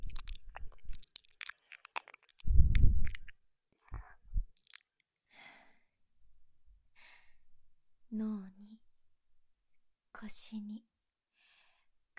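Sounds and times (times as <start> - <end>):
ear licking: 0.0 - 5.1
breathing sighs: 5.3 - 5.8, 7.0 - 7.4, 11.4 - 11.9.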